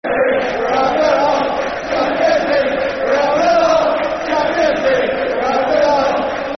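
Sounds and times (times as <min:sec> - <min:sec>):
football crowd chanting a soccer song: 0:00.0 - 0:06.5.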